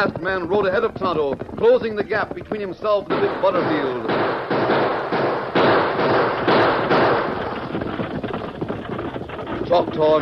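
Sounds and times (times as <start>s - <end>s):
speech: 0.0s - 4.9s, 9.7s - 10.2s
steady rumbling wash of noise: 0.0s - 10.2s
gunshots fired at a distance: 3.0s - 9.0s.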